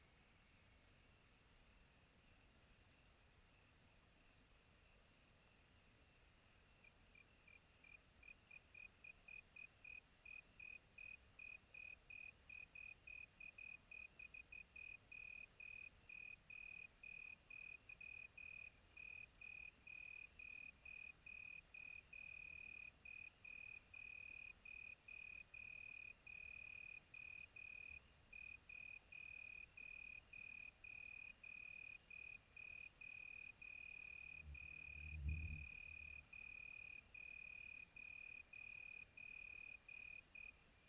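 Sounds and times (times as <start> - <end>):
faint hiss of other insects at night: 0.0 - 40.8
cricket chirping at night: 2.1 - 40.8.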